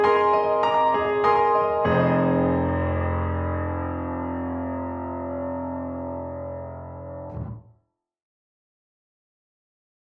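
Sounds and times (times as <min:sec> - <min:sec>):
grand piano: 0:00.0 - 0:07.7.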